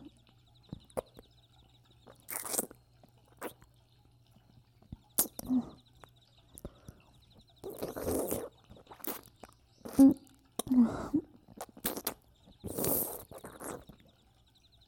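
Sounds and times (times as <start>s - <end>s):
ASMR ear licking: 2.1s - 3.8s, 4.9s - 14.1s.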